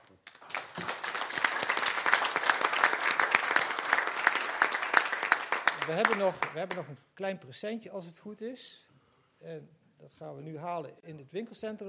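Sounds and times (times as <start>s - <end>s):
audience applause: 0.2s - 6.7s
speech: 5.9s - 11.8s.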